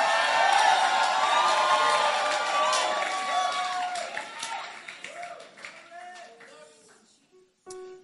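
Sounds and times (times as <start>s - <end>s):
audience screaming and cheering: 0.0s - 5.6s
scattered claps: 2.3s - 7.0s.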